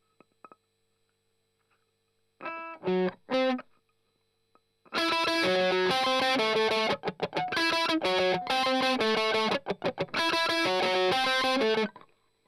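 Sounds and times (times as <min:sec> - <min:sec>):
strummed octaves: 0:05.0 - 0:11.9.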